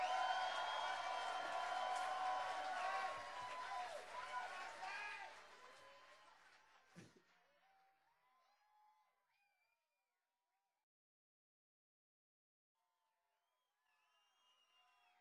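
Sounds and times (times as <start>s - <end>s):
audience cheering for the band: 0.0s - 6.1s
audience applauding for the band: 0.0s - 7.2s.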